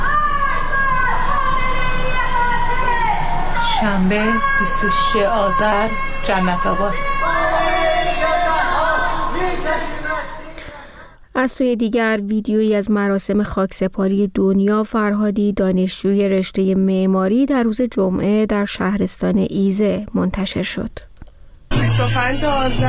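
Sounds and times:
anti-government slogans chanted from residential buildings in Jannatabad and Marzdaran Boulevard: 0.0s - 11.0s
speech: 3.8s - 7.1s, 11.4s - 21.1s, 22.0s - 22.8s.

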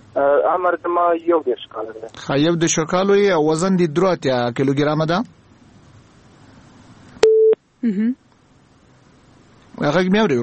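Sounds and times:
speech: 0.2s - 5.4s, 7.8s - 8.2s, 9.8s - 10.4s
electronic beep on a phone line after the call connection drops: 7.2s - 7.6s.

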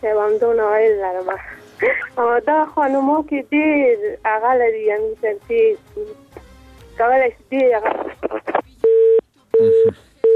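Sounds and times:
speech: 0.0s - 6.3s, 7.0s - 8.6s, 9.6s - 10.1s
phone busy tone beeps after a call cuts off: 8.8s - 10.3s.

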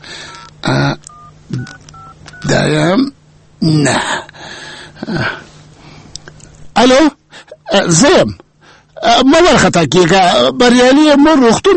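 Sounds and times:
telephone keypad tones dialing a number: 0.3s - 2.5s
speech: 2.5s - 4.2s, 6.8s - 7.1s, 7.7s - 8.4s, 9.0s - 11.7s.

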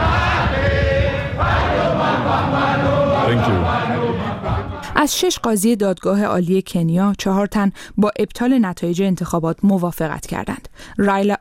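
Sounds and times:
supporters cheering: 0.0s - 4.9s
speech: 3.3s - 11.4s.

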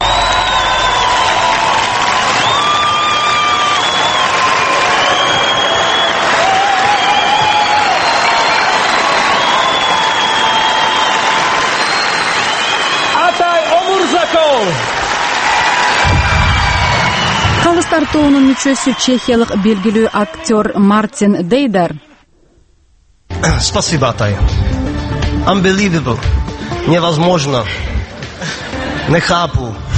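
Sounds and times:
talent show audience applause after a semifinal dance performance: 0.0s - 20.6s
speech: 18.1s - 22.1s, 23.4s - 24.8s, 25.5s - 29.9s.

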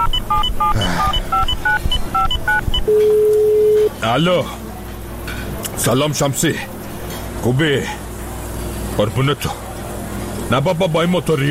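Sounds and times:
telephone number dialed with two-tone beeps: 0.0s - 3.9s
speech: 4.0s - 4.6s, 5.8s - 6.7s, 7.4s - 8.0s, 9.0s - 9.6s, 10.5s - 11.4s.

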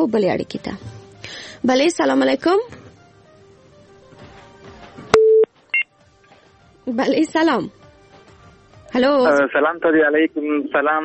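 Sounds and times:
speech: 0.0s - 2.8s, 6.9s - 7.8s, 8.9s - 11.0s
telephone busy tone after a call was cut off: 5.1s - 5.9s.

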